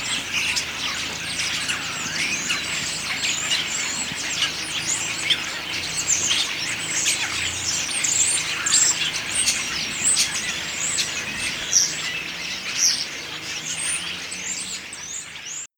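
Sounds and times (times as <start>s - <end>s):
starling autumn song: 0.0s - 15.4s.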